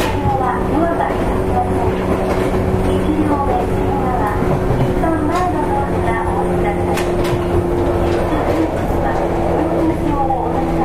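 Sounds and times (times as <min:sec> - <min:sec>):
JR West 105 series train running: 0:00.0 - 0:10.8
faint murmuring voices: 0:00.0 - 0:10.8.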